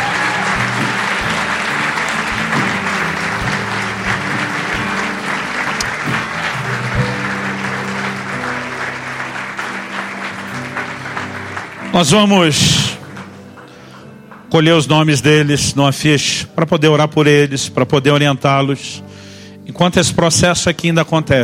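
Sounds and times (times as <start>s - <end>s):
strong audience applause: 0.0s - 15.0s
speech: 12.0s - 13.0s, 14.5s - 21.4s.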